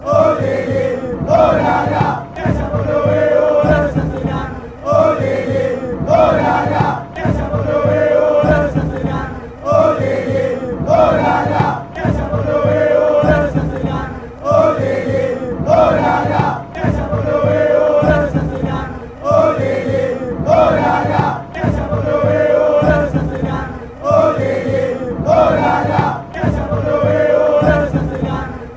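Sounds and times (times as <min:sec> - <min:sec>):
chanting: 0:00.0 - 0:28.7.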